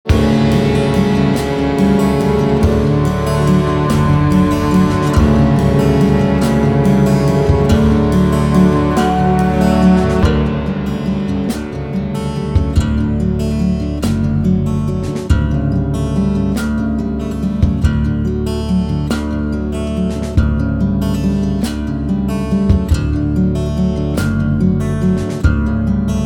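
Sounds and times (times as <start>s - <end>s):
instrumental music: 0.0s - 26.2s.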